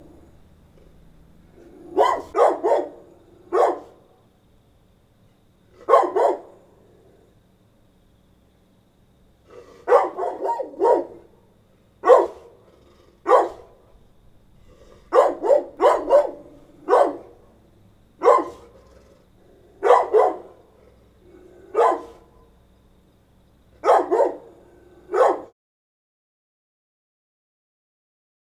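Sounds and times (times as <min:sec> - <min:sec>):
medium-sized dog barking: 0:01.8 - 0:04.1, 0:05.8 - 0:06.7, 0:09.5 - 0:11.4, 0:12.0 - 0:12.6, 0:13.2 - 0:13.9, 0:14.7 - 0:17.5, 0:18.2 - 0:19.2, 0:19.8 - 0:20.7, 0:21.6 - 0:22.4, 0:23.8 - 0:25.6.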